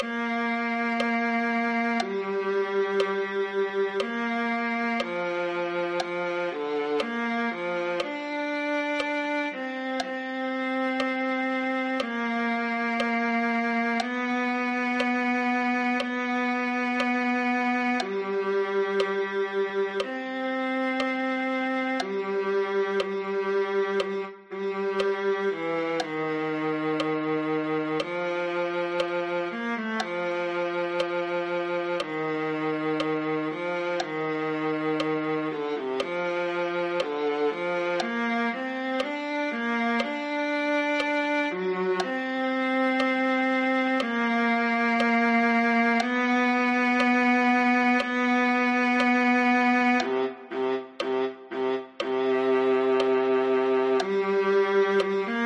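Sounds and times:
viola: 0.0 - 55.4.

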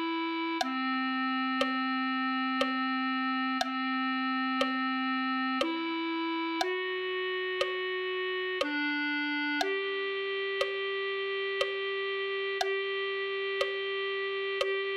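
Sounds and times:
clarinet: 0.0 - 14.9.

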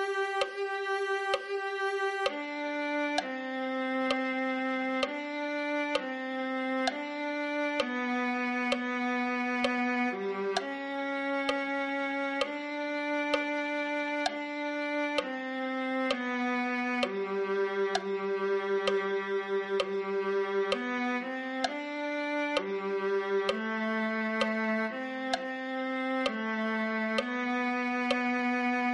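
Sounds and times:
viola: 0.0 - 28.9.

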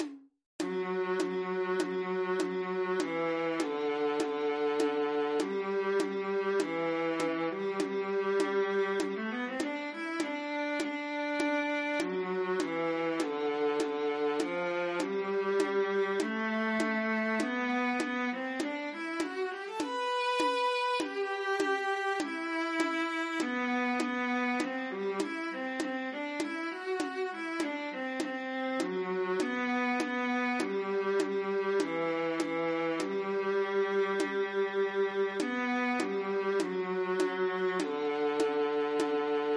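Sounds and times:
viola: 0.0 - 39.5.

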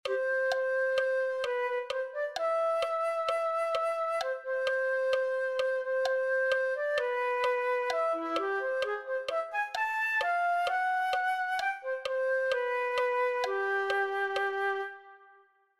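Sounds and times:
flute: 0.0 - 15.7.

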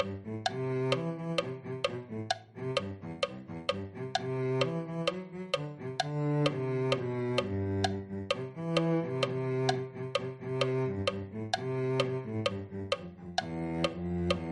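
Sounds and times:
cello: 0.0 - 14.4.

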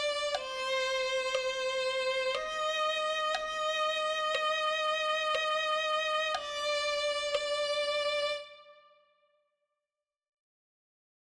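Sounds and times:
violin melody of a hymn: 0.0 - 9.0.

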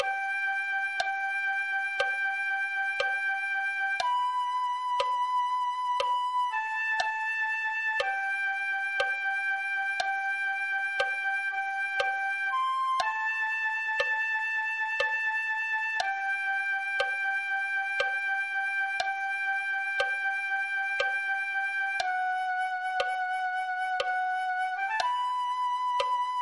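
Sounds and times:
flute: 0.0 - 26.4.

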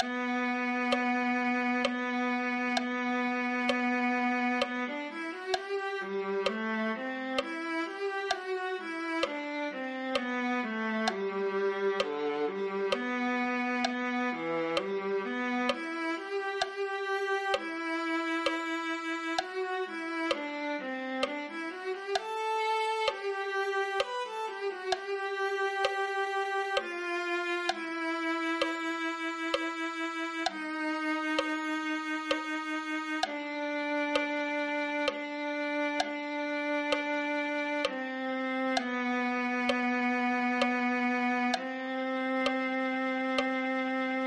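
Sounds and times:
viola: 0.0 - 44.2.

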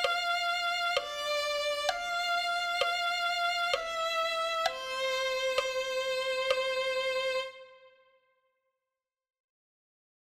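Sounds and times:
violin: 0.0 - 8.2.

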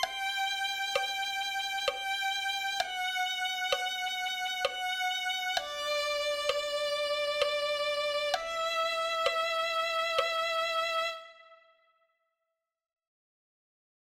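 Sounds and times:
violin playing: 0.0 - 11.7.

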